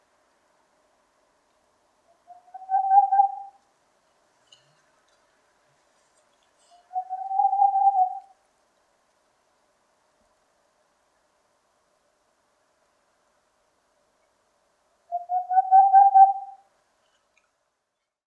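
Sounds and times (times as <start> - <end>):
Aegolius funereus owl calling: 2.2 - 3.6, 6.7 - 8.4, 15.1 - 16.7.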